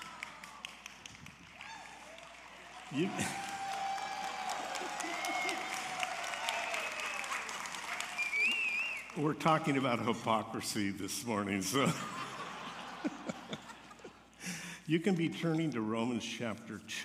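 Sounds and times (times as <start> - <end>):
audience applause: 0.0 - 10.0
speech: 2.9 - 3.5, 9.2 - 12.2, 14.9 - 17.0
laughter: 3.0 - 3.7, 11.5 - 14.8.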